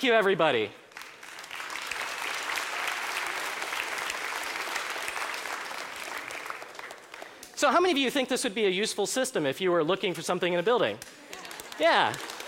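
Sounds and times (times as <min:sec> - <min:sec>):
speech: 0:00.0 - 0:00.8, 0:07.6 - 0:12.3
audience applause: 0:00.9 - 0:07.6, 0:11.0 - 0:12.4.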